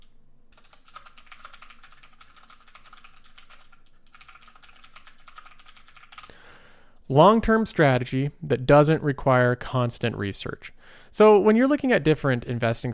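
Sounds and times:
fingers typing on a computer keyboard: 0:00.5 - 0:06.3
speech: 0:07.1 - 0:12.9.

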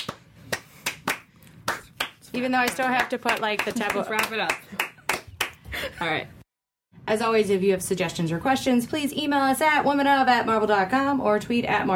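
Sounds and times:
slow clapping: 0:00.0 - 0:05.6
speech: 0:02.4 - 0:04.7, 0:06.0 - 0:06.4, 0:07.1 - 0:11.9.

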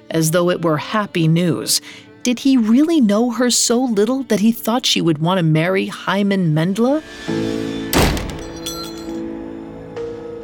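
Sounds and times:
speech: 0:00.1 - 0:08.1
door slamming: 0:07.9 - 0:08.9
light rattles and a clink: 0:08.3 - 0:09.2.

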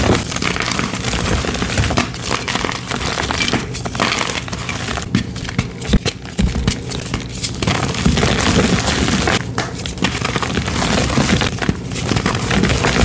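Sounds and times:
gym chalk rainbow cylinders being crushed: 0:00.0 - 0:13.0.

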